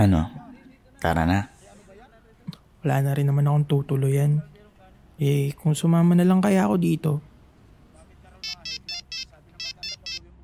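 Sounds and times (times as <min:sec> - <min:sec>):
speech: 0:00.0 - 0:00.4, 0:01.0 - 0:01.5, 0:02.8 - 0:04.5, 0:05.2 - 0:07.3
mobile phone ringing with an incoming call: 0:08.4 - 0:10.2.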